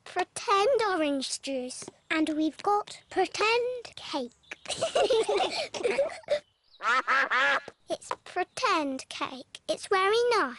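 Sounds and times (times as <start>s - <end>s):
speech: 0.2s - 10.5s
laughter: 4.7s - 7.7s
ducks quacking: 6.8s - 7.8s.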